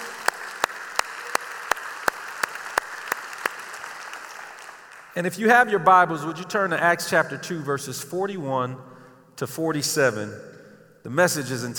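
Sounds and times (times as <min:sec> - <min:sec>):
audience applauding: 0:00.0 - 0:05.2
speech: 0:05.2 - 0:11.7.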